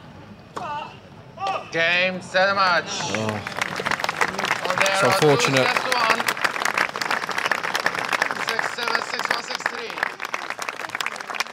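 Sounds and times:
speech: 1.7s - 3.9s, 4.9s - 6.1s
polite applause from tennis crowd: 2.9s - 11.5s.

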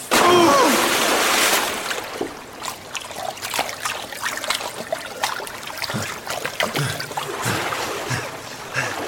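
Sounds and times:
underground river water splashing: 0.0s - 9.0s.

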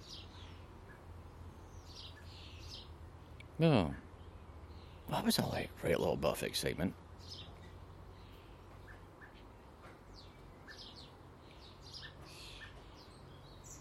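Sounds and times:
blackbirds calling during high-speed pursuit: 0.0s - 13.8s
speech: 3.6s - 4.0s, 5.1s - 7.4s.

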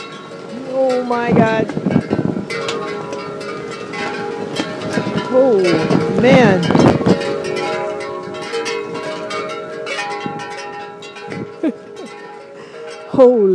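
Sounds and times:
bell-like clanking tones: 0.0s - 13.5s
long strong gust of wind: 0.0s - 13.5s
speech: 0.8s - 2.6s, 5.3s - 7.0s, 13.2s - 13.5s.

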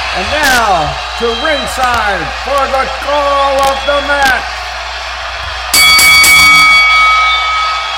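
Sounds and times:
speech: 0.2s - 4.5s
boxing ring bell clanging: 5.7s - 7.9s.

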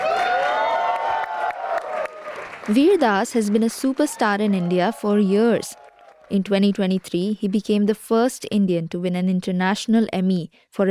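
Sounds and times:
theater audience at the Lincoln Center Theater cheering as a comedian is introduced: 0.0s - 2.8s, 3.5s - 6.4s
scattered claps: 0.0s - 7.8s
speech: 2.7s - 10.8s.

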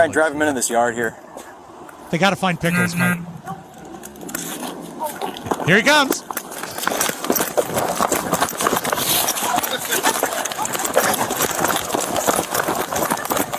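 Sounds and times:
speech: 0.0s - 1.5s, 2.1s - 3.6s, 5.6s - 6.2s
pig's feet pattering as it runs while being chased around a yard: 3.9s - 13.5s.

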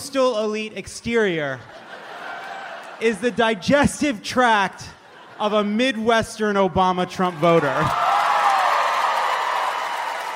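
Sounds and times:
speech: 0.1s - 1.8s, 3.0s - 8.0s
laughter: 1.5s - 6.2s
audience applause: 7.6s - 10.3s.

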